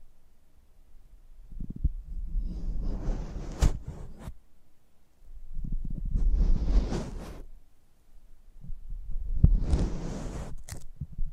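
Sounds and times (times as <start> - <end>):
scratchy crinkly brushing of a microphone: 2.4 - 4.4, 5.9 - 7.5, 9.4 - 10.9.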